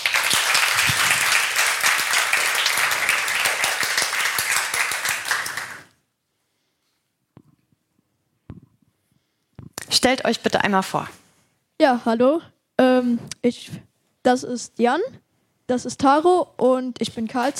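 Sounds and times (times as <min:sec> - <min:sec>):
audience applause: 0:00.0 - 0:05.9
speech: 0:10.0 - 0:11.2, 0:11.8 - 0:17.5.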